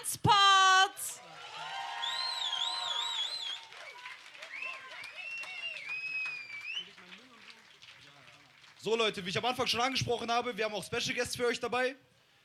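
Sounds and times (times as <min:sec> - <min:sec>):
speech: 0:00.0 - 0:00.4, 0:08.8 - 0:12.1
people cheering: 0:01.1 - 0:08.6
audience applause: 0:01.5 - 0:09.6
shrill wavering whistles: 0:01.9 - 0:07.0.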